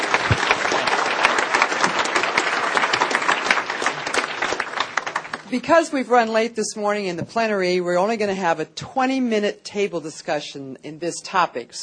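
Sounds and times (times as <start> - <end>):
room full of people clapping: 0.0 - 5.8
speech: 5.5 - 11.8.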